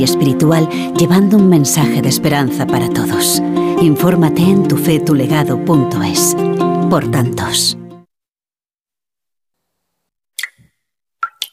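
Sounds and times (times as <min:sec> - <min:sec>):
speech: 0:00.0 - 0:07.8
shower dripping: 0:10.4 - 0:11.5.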